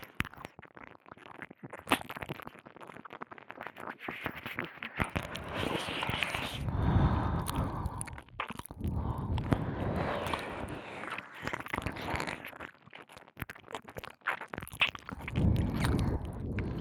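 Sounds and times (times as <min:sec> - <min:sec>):
ear licking sounds: 0:05.0 - 0:16.7.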